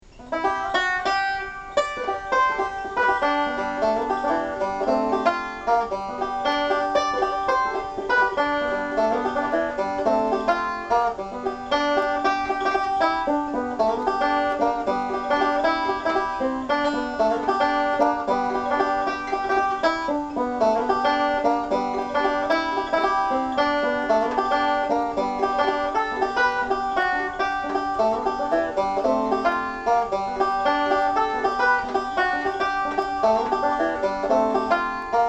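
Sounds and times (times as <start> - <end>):
banjo: 0.0 - 35.2.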